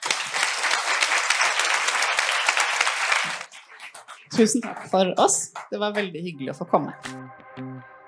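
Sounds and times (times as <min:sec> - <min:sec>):
audience applause for the panel: 0:00.0 - 0:04.8
speech: 0:04.4 - 0:07.7.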